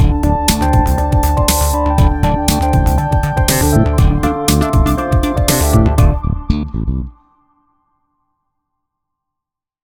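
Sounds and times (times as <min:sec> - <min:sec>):
funk music: 0:00.0 - 0:07.2.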